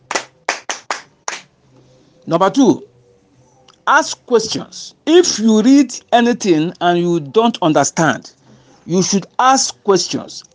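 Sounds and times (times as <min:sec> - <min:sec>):
audience clapping in unison: 0:00.0 - 0:01.5
speech: 0:02.3 - 0:02.9, 0:03.9 - 0:10.5.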